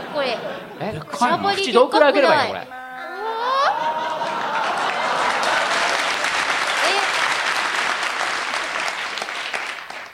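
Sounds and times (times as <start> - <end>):
laughter: 0.0 - 1.4, 2.8 - 7.0
speech: 0.2 - 2.8
group clapping: 3.8 - 10.1.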